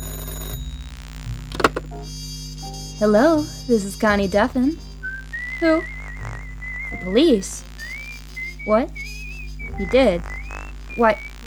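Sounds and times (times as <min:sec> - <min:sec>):
telephone ringing: 0:00.0 - 0:00.8
low hum: 0:00.0 - 0:11.4
speech: 0:02.0 - 0:04.8, 0:05.6 - 0:06.0, 0:07.0 - 0:07.7, 0:08.7 - 0:09.1, 0:09.8 - 0:10.4, 0:11.0 - 0:11.3.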